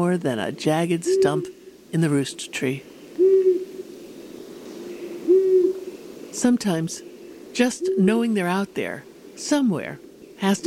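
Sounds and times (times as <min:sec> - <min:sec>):
speech: 0:00.0 - 0:03.6, 0:06.4 - 0:10.6
faint hiss: 0:00.0 - 0:10.6
long-eared owl hooting: 0:01.0 - 0:01.8, 0:02.4 - 0:06.4, 0:07.0 - 0:08.3.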